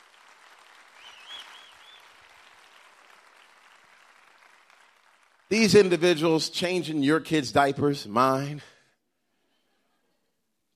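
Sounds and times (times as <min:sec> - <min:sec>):
audience round of applause: 0:00.0 - 0:06.4
speech: 0:05.5 - 0:08.7.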